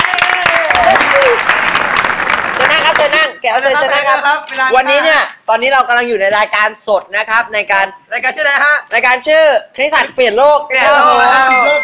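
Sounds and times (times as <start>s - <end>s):
audience applause for a guest: 0.0s - 3.2s
speech: 3.5s - 11.8s.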